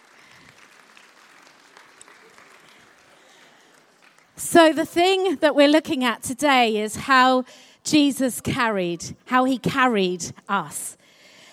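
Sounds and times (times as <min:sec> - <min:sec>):
crowd applauding: 0:00.0 - 0:04.4
speech: 0:04.5 - 0:11.0.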